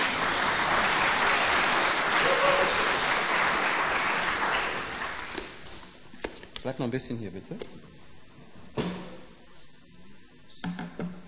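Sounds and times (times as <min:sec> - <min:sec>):
audience applause: 0:00.0 - 0:05.6
speech: 0:06.6 - 0:08.1.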